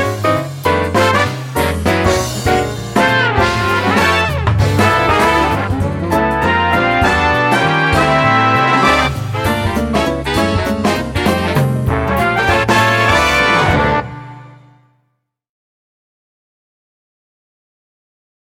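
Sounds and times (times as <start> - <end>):
bright swing music at slower tempo: 0.0 - 14.8.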